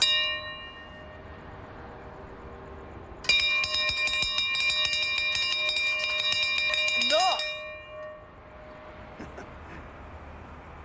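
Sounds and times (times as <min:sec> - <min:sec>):
bell ringing: 0:00.0 - 0:01.4, 0:03.2 - 0:08.8.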